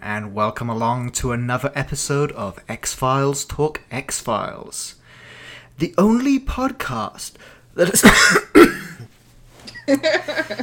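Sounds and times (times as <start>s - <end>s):
speech: 0.2s - 5.0s, 5.8s - 10.6s
man clearing throat: 7.8s - 9.1s.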